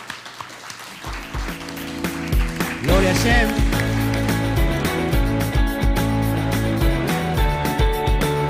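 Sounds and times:
audience applause: 0:00.0 - 0:05.2
low thumping beats: 0:02.3 - 0:08.3
speech: 0:02.8 - 0:03.7.

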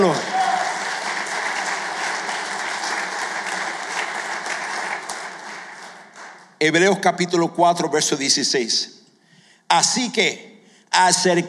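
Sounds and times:
speech: 0:00.0 - 0:00.3, 0:06.6 - 0:09.0, 0:09.7 - 0:11.4
audience applauding loudly: 0:00.0 - 0:06.6.

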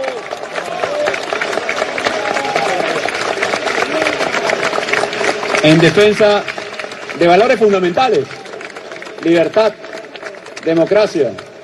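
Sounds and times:
crowd applause: 0:00.0 - 0:11.6
speech: 0:05.6 - 0:06.5, 0:07.2 - 0:08.4, 0:09.2 - 0:09.8, 0:10.6 - 0:11.4.

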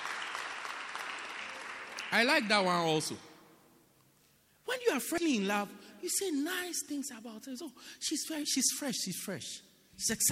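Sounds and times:
audience clapping hands: 0:00.0 - 0:02.9
speech: 0:02.1 - 0:03.3, 0:04.9 - 0:10.3.

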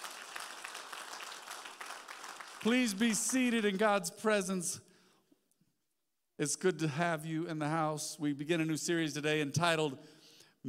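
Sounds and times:
church congregation clapping as a worship offering: 0:00.0 - 0:04.0
speech: 0:02.6 - 0:04.9, 0:06.4 - 0:10.6.

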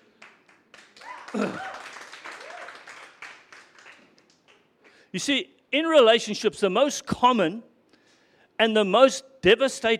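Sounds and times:
audience clapping: 0:00.0 - 0:05.0
speech: 0:01.3 - 0:01.8, 0:05.2 - 0:07.7, 0:08.6 - 0:09.9.

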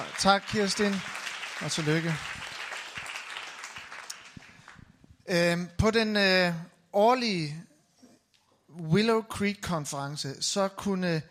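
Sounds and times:
speech: 0:00.0 - 0:02.4, 0:05.3 - 0:07.7, 0:08.8 - 0:11.2
Danish church congregation clapping for a new leadership team member: 0:00.0 - 0:05.0.

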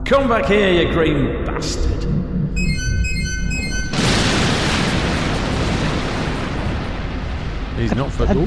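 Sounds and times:
speech: 0:00.1 - 0:02.9, 0:07.8 - 0:08.4
thin high electronic tones: 0:02.5 - 0:04.2
loud explosion blasting through a wall: 0:03.9 - 0:08.0
roaring rumble of debris: 0:03.9 - 0:08.4.

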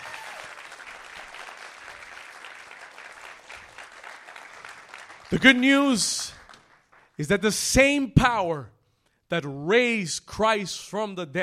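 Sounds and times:
audience hand clapping: 0:00.0 - 0:07.5
speech: 0:05.3 - 0:06.4, 0:07.2 - 0:11.4.

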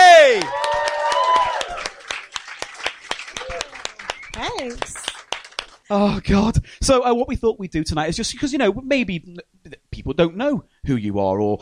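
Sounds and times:
audience applause: 0:00.0 - 0:05.9
speech: 0:05.9 - 0:11.6.

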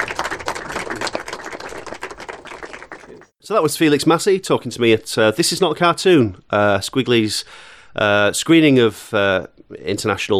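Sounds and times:
audience applause: 0:00.0 - 0:03.3
speech: 0:03.5 - 0:10.3.

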